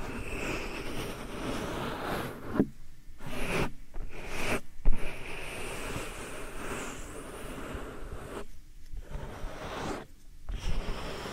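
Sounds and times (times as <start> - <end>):
soft powder ear massage rubbing and brushing strokes: 0.0 - 11.3.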